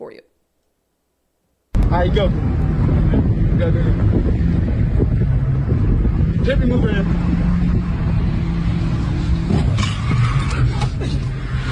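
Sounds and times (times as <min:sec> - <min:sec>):
speech: 0:00.0 - 0:00.4, 0:02.0 - 0:02.6, 0:03.6 - 0:04.5, 0:06.4 - 0:07.4
car engine droning: 0:01.8 - 0:11.6
car hitting another car, crunching impact: 0:09.5 - 0:11.0.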